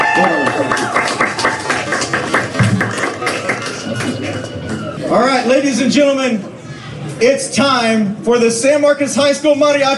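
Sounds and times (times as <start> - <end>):
audience applause as performers exit: 0.0 - 5.1
speech: 0.2 - 0.8, 5.1 - 6.5, 7.2 - 9.9.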